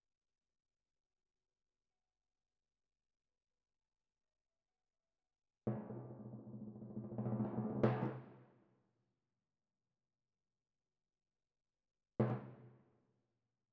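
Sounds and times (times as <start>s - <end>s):
timpani: 5.7s - 8.4s.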